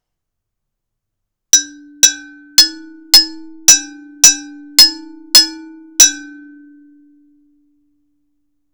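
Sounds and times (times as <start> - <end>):
vidriofono glass instrument: 1.6 - 7.2.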